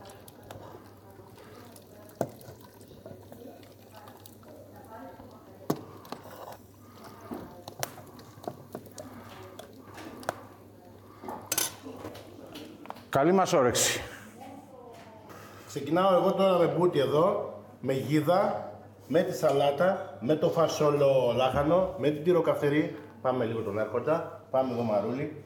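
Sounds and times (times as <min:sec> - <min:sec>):
dishes and cutlery clattering as a meal is served: 0:11.2 - 0:12.2
speech: 0:13.2 - 0:14.1, 0:15.7 - 0:25.4.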